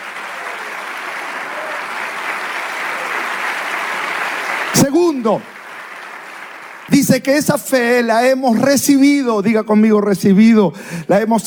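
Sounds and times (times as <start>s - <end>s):
audience applause: 0.0s - 7.4s
speech: 4.9s - 5.5s, 6.9s - 11.4s.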